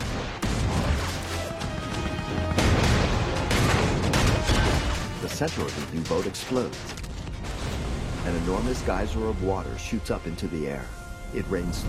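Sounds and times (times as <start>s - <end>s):
warship guns firing at a half-surfaced U-boat: 0.0s - 7.8s
speech: 5.4s - 7.0s, 8.3s - 11.8s.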